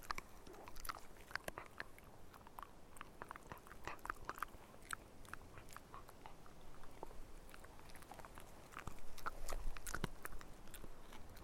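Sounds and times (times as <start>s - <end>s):
dog eating with crunches and bites: 0.0s - 11.4s.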